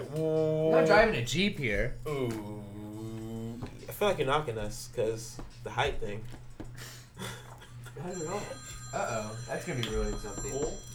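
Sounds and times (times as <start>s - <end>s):
speech: 0.1s - 2.6s, 4.0s - 7.4s, 8.0s - 10.9s
phone ringtone for incoming call: 8.0s - 10.9s.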